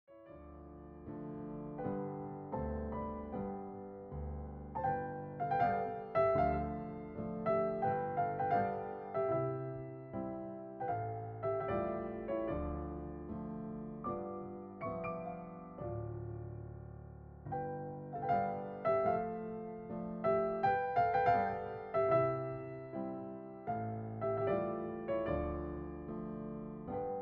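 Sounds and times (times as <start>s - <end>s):
classical dance piece: 0.1s - 27.2s.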